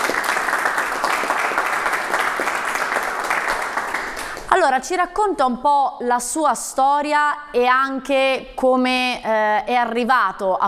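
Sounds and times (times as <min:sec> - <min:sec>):
audience applause: 0:00.0 - 0:04.6
speech: 0:04.5 - 0:10.6.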